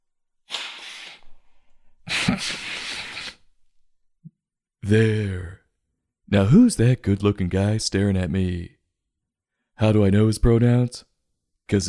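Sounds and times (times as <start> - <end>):
nose blowing: 0.5 - 1.4, 2.0 - 3.6
speech: 2.4 - 2.6, 4.9 - 5.6, 6.3 - 8.8, 9.8 - 11.1, 11.7 - 11.8.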